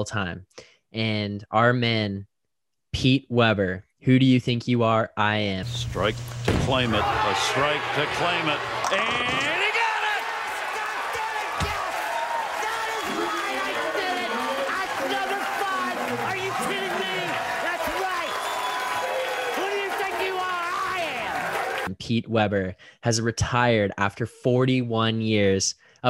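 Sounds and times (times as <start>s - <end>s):
speech: 0.0s - 2.3s, 2.9s - 9.4s, 22.0s - 26.0s
applause: 7.5s - 21.9s.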